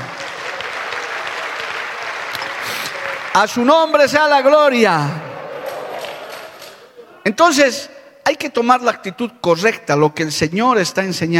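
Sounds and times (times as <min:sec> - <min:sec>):
audience applauding: 0:00.0 - 0:07.0
speech: 0:03.4 - 0:05.3, 0:07.3 - 0:11.3.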